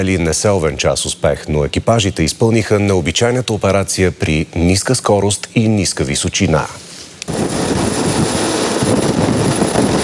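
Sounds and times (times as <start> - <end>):
speech: 0.0 - 6.9
Cougar military helicopters flying: 7.3 - 10.0.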